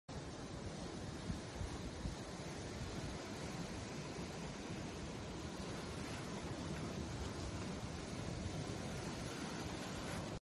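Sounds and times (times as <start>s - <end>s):
ocean: 0.1s - 10.4s.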